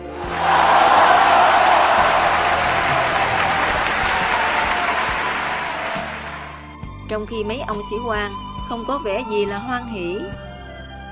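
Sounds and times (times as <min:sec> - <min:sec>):
crowd on shore applauding and cheering: 0:00.0 - 0:06.8
speech: 0:07.2 - 0:10.4.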